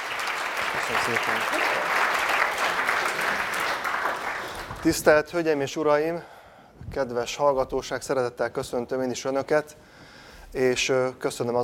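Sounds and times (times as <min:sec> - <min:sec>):
audience applause welcoming a speaker: 0:00.0 - 0:05.0
speech: 0:00.7 - 0:03.6, 0:04.8 - 0:06.3, 0:06.9 - 0:09.9, 0:10.5 - 0:11.6.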